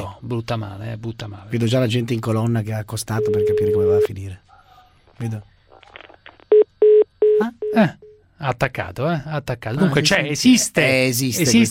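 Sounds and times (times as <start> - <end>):
speech: 0.0 - 4.5, 5.2 - 5.5, 7.4 - 11.6
telephone ringing tone on an unanswered call: 3.2 - 4.0.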